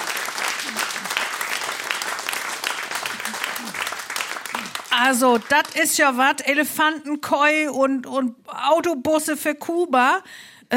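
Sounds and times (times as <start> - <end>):
audience applause: 0.0 - 5.8
speech: 5.0 - 10.7.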